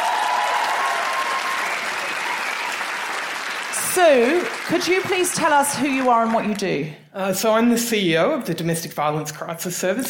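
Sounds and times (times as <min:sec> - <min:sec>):
audience applause: 0:00.0 - 0:06.6
speech: 0:04.0 - 0:10.0.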